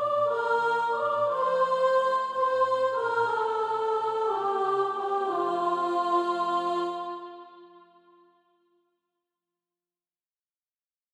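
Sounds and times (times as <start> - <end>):
soprano singing SATB practice music: 0.0 - 8.0.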